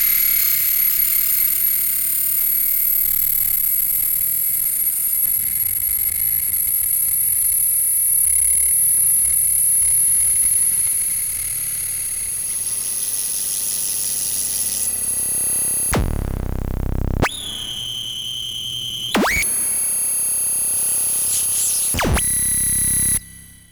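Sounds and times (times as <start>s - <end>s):
tuning noise: 12.1s - 23.7s.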